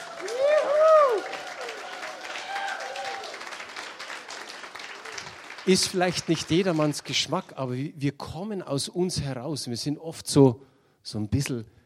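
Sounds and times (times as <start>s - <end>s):
audience applauding: 0.0s - 7.5s
speech: 5.7s - 11.8s.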